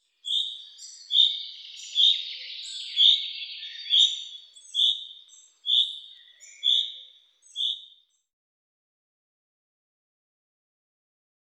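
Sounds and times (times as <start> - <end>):
finch songbird singing: 0.2 - 8.2.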